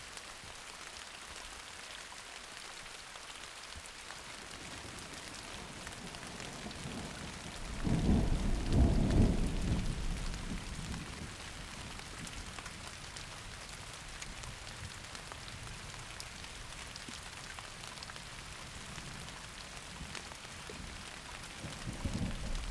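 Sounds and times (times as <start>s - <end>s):
thunderstorm: 4.8s - 12.2s, 20.8s - 22.6s.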